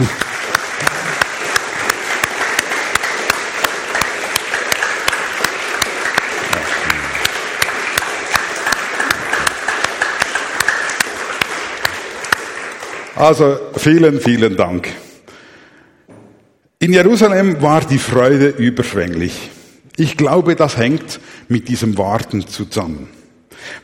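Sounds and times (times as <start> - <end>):
audience applause: 0.0 - 13.5
speech: 13.2 - 15.0, 16.8 - 23.8.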